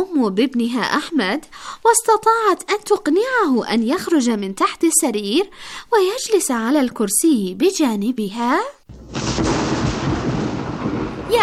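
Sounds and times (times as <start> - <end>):
speech: 0.1 - 9.6
thunder: 8.9 - 11.4.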